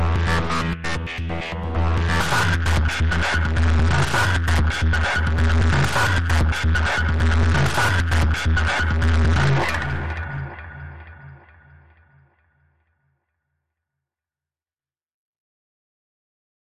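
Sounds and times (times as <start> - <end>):
arpeggios: 0.0 - 11.8.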